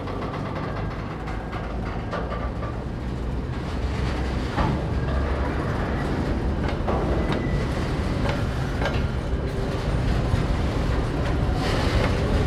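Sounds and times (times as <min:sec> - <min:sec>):
train approaching a port: 0:00.0 - 0:12.4.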